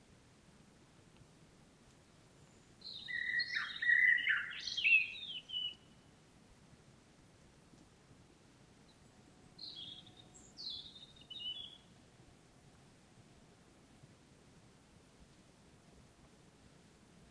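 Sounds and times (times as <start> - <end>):
common blackbird singing: 2.8 - 5.9, 9.6 - 11.9.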